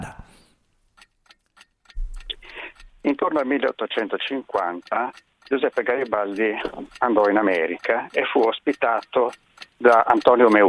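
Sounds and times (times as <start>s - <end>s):
countdown timer ticking: 1.0s - 10.6s
speech: 3.0s - 10.6s.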